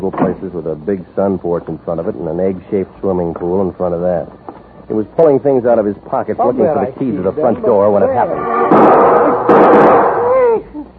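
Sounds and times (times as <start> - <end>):
speech: 0.5 - 9.9
loud sharp bang: 8.4 - 10.4
brief wavering vocal cry: 9.2 - 10.9.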